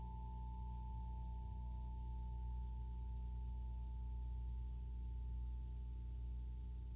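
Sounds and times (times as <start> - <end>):
chime: 0.0 - 6.8.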